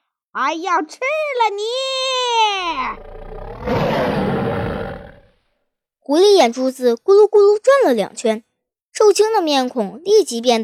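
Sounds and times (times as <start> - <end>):
speech: 0.4 - 4.0, 6.1 - 10.6
tiger roaring: 2.6 - 5.4.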